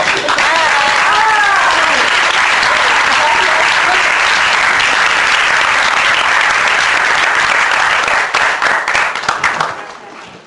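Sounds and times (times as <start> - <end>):
loud applause: 0.0 - 10.3
people cheering and whistling: 0.3 - 2.1.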